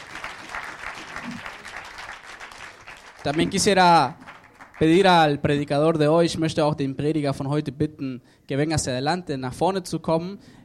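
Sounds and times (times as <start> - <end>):
audience applause: 0.0 - 5.0
speech: 3.2 - 4.2, 4.8 - 10.6.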